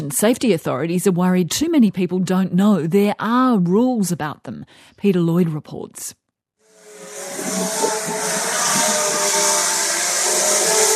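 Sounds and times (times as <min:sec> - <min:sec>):
speech: 0:00.0 - 0:06.2
drone buzzing in flight: 0:06.7 - 0:10.9.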